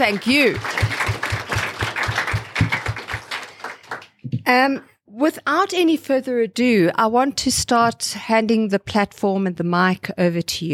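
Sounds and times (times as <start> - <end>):
speech: 0.0 - 0.8, 4.5 - 10.7
audience applause: 0.0 - 4.2.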